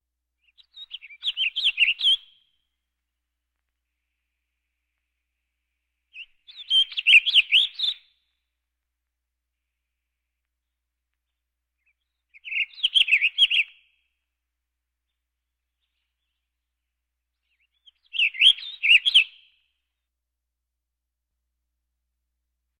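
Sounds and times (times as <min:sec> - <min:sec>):
birds: 0:00.4 - 0:02.6, 0:03.6 - 0:08.4, 0:09.7 - 0:14.2, 0:15.0 - 0:19.7.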